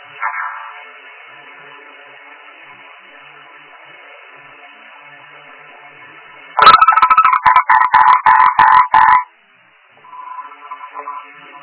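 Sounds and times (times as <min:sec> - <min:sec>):
faint hum: 0:00.0 - 0:11.6
frog croaking: 0:06.6 - 0:09.3.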